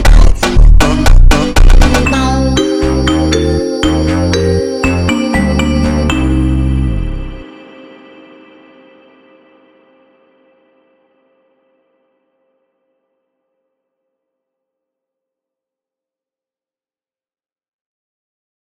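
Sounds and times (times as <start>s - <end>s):
slowed funk music: 0.0s - 7.5s.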